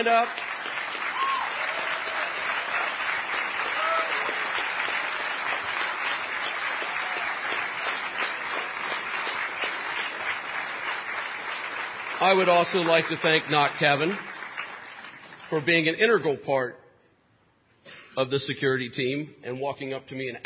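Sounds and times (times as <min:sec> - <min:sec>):
speech: 0:00.0 - 0:00.5, 0:12.2 - 0:14.3, 0:15.5 - 0:16.8, 0:18.2 - 0:20.4
crowd applauding: 0:00.0 - 0:15.9.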